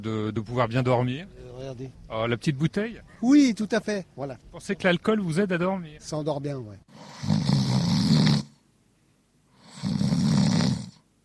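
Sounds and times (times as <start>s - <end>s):
speech: 0.0s - 7.5s
person snoring after a boozy meal: 6.9s - 8.6s, 9.6s - 11.0s.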